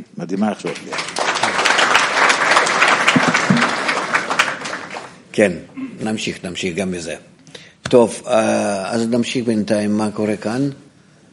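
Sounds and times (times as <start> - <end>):
speech: 0.0 - 1.1, 5.4 - 7.3, 7.9 - 10.8
audience clapping: 0.5 - 5.2.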